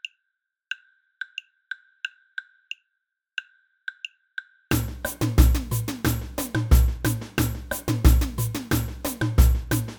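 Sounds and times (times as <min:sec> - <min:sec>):
samba band block: 0:04.7 - 0:09.9.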